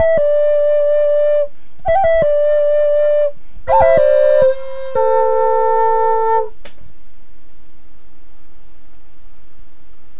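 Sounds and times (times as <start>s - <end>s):
drone flute of butternut and red cedar: 0.0s - 6.6s.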